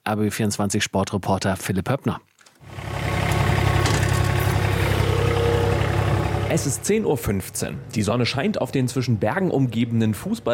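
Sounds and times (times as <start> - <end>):
speech: 0.1 - 2.3, 6.5 - 10.5
ride-on lawn mower engine running: 2.6 - 7.5
faint rattling vibration: 2.6 - 7.8.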